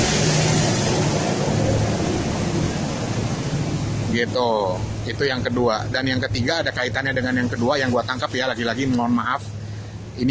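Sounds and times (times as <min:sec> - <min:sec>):
boat passing by on the water: 0:00.0 - 0:10.2
speech: 0:04.2 - 0:09.6.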